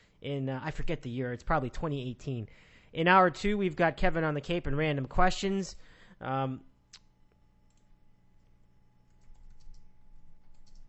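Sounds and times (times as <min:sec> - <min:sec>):
speech: 0:00.2 - 0:06.7
computer keyboard keys clicking: 0:09.1 - 0:10.8.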